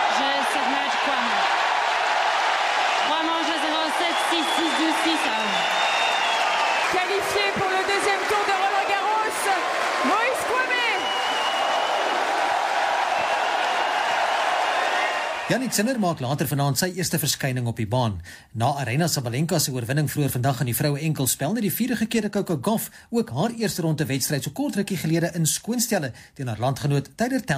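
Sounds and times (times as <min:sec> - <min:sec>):
tennis crowd voices shouting and chanting: 0:00.0 - 0:05.7, 0:06.9 - 0:15.8
tennis crowd clapping: 0:00.0 - 0:16.2
speech: 0:15.5 - 0:27.5.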